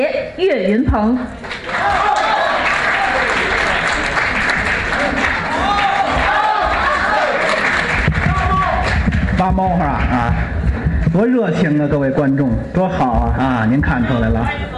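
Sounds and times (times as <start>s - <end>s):
speech: 0.0s - 2.2s, 9.4s - 14.7s
audience applause: 1.4s - 10.5s.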